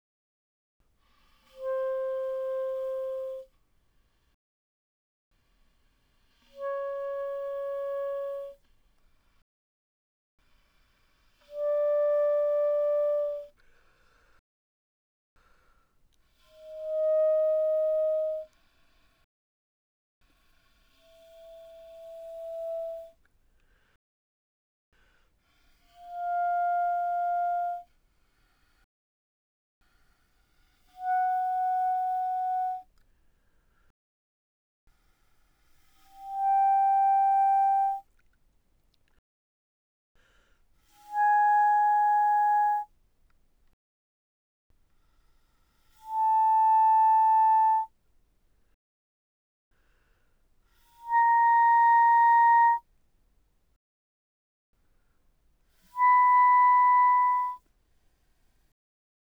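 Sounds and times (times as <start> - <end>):
Bb clarinet notes played pianissimo: 1.6 - 3.5, 6.6 - 8.6, 11.5 - 13.5, 16.8 - 18.5, 26.1 - 27.8, 31.0 - 32.9, 36.2 - 38.0, 41.0 - 42.9, 46.1 - 47.9, 51.0 - 52.8, 55.9 - 57.6.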